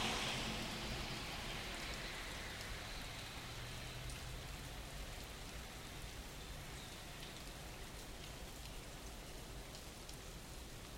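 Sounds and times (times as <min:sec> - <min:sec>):
faint low rumble of a passing car: 0:00.0 - 0:04.0
morning rain pattering by a front door: 0:00.0 - 0:10.9.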